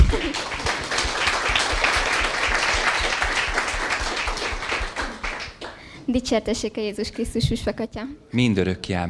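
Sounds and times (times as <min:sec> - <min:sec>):
audience applause welcoming a guest: 0:00.0 - 0:05.9
speech: 0:00.1 - 0:00.6, 0:06.1 - 0:09.0.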